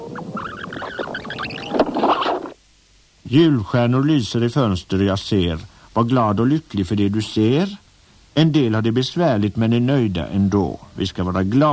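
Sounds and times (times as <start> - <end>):
cassette tape fast-forwarding: 0.0 - 2.6
speech: 3.3 - 7.8, 8.4 - 11.7.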